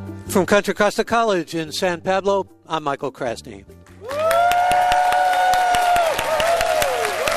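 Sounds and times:
speech: 0:00.3 - 0:03.8
live audience at Contra Costa College in San Pablo clapping and cheering: 0:03.9 - 0:07.3.

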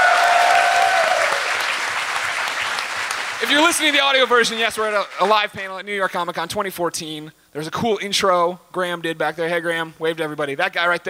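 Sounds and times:
audience applause: 0:00.0 - 0:05.5
speech: 0:03.5 - 0:11.0.

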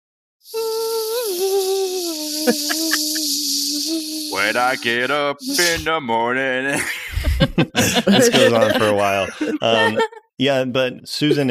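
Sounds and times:
speech: 0:00.4 - 0:00.7, 0:02.5 - 0:02.9, 0:04.3 - 0:11.4
kazoo playing: 0:00.5 - 0:05.9
laughter: 0:02.5 - 0:03.2, 0:06.7 - 0:10.2.

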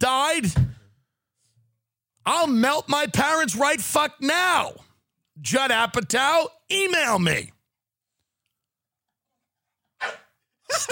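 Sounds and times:
speech: 0:00.0 - 0:00.8, 0:02.3 - 0:07.6, 0:10.0 - 0:10.9
dog barking at the box of Magic Spoon: 0:10.0 - 0:10.3.

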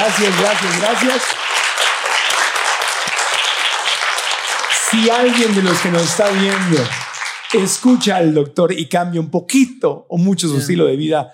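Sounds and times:
speech: 0:00.0 - 0:01.6, 0:04.9 - 0:11.3
applause: 0:00.0 - 0:08.4.

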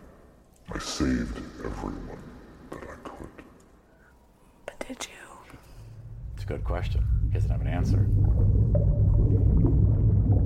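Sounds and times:
speech: 0:01.0 - 0:02.2, 0:06.5 - 0:10.4
chamber rumbling: 0:05.9 - 0:10.4.

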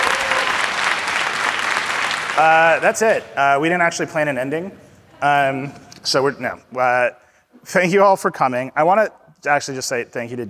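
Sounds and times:
audience applause at a tenth-anniversary event: 0:00.0 - 0:02.8
speech: 0:02.4 - 0:10.4.

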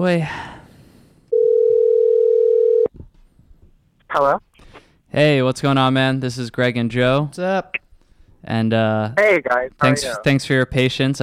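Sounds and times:
speech: 0:00.0 - 0:00.5, 0:04.1 - 0:04.5, 0:05.1 - 0:07.8, 0:08.4 - 0:11.2
telephone ring tone: 0:01.3 - 0:02.9.

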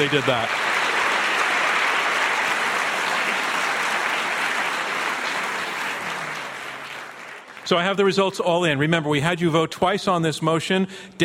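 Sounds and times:
speech: 0:00.0 - 0:00.7, 0:07.7 - 0:11.2
crowd applause: 0:00.0 - 0:07.9.

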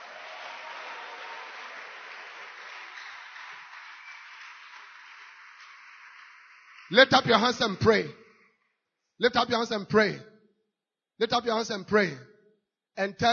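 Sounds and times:
audience clapping: 0:00.0 - 0:08.6
speech: 0:06.9 - 0:08.2, 0:09.2 - 0:10.3, 0:11.2 - 0:12.3, 0:13.0 - 0:13.3.

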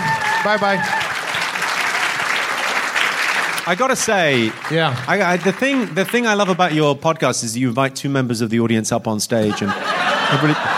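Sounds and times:
audience applause for the comedy duo the Sklar Brothers: 0:00.0 - 0:06.8
speech: 0:00.4 - 0:01.0, 0:03.7 - 0:10.7
laughter: 0:09.4 - 0:10.7.

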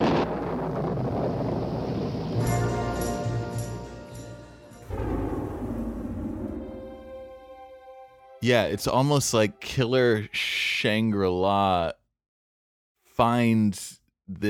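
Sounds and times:
thunder rumbling: 0:00.0 - 0:03.6, 0:04.8 - 0:07.6
speech: 0:08.4 - 0:12.0, 0:13.2 - 0:14.4.

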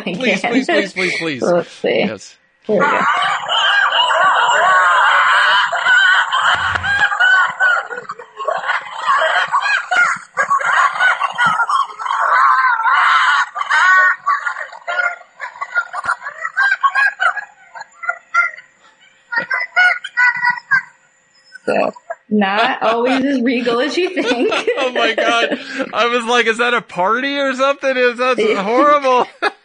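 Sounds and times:
laughter: 0:00.0 - 0:01.5, 0:02.8 - 0:21.0, 0:21.6 - 0:29.6
speech: 0:00.0 - 0:03.7, 0:22.4 - 0:29.3
wolf pack of adults and pups howling: 0:02.8 - 0:18.6.

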